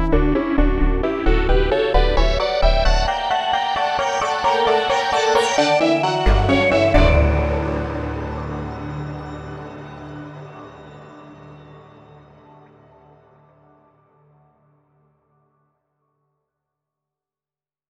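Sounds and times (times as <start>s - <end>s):
adagio allegro classical music: 0.2s - 12.7s.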